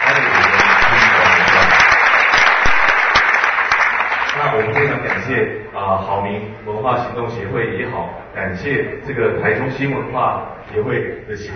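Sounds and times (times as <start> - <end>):
audience applause: 0.0 - 5.4
speech: 4.5 - 11.5.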